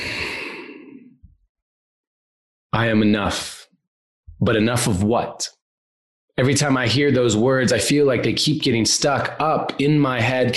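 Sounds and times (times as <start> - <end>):
deep breath let out in a long soft airy exhale: 0.0 - 1.1
speech: 2.8 - 3.7, 4.4 - 5.6, 6.4 - 10.5.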